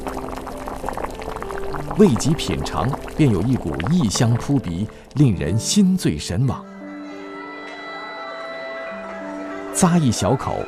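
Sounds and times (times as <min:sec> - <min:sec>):
boiling water poured over tea: 0:00.0 - 0:06.3
speech: 0:01.8 - 0:06.7, 0:09.8 - 0:10.6.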